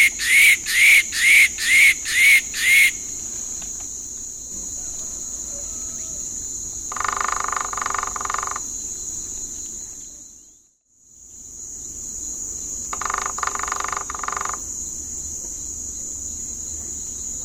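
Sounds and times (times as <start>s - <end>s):
white-throated woodpecker calling in eastern lowlands of South America: 0.0s - 3.3s, 13.0s - 14.6s.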